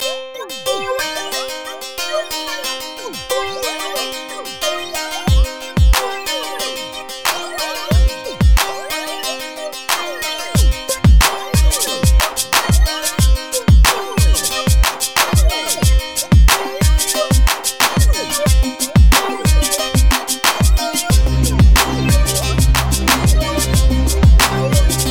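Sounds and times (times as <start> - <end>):
music beat: 0.0 - 25.1.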